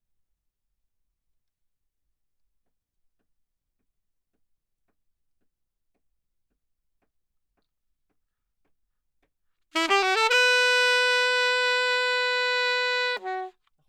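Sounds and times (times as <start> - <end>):
saxophone: 9.8 - 13.6.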